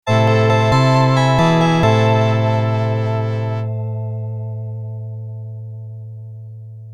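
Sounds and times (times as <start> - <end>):
sad music: 0.1 - 4.0.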